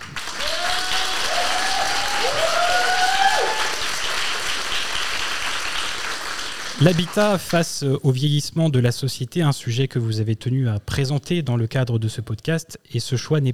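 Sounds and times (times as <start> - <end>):
audience applause: 0.0 - 7.4
speech: 6.8 - 13.5.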